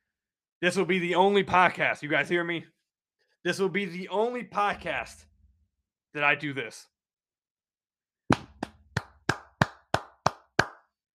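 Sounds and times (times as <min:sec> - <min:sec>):
speech: 0:00.6 - 0:02.8, 0:03.4 - 0:05.3, 0:06.1 - 0:06.9
single person clapping hands: 0:08.3 - 0:11.0.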